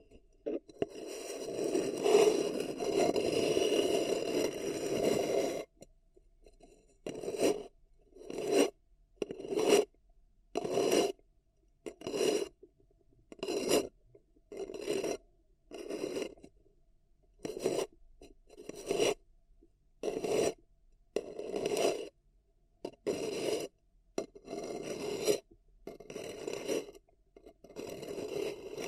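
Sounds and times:
fingers scratching and rubbing a paper cup: 0.5s - 5.8s, 6.5s - 9.9s, 10.5s - 11.2s, 11.8s - 12.6s, 13.3s - 16.6s, 17.4s - 19.2s, 20.0s - 20.6s, 21.2s - 22.2s, 22.8s - 28.8s.

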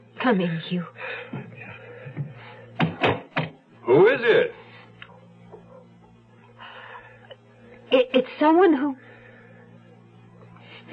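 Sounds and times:
speech: 0.2s - 1.6s, 3.9s - 4.6s, 7.9s - 9.0s
sharp loud knocks on a door: 2.2s - 3.6s.

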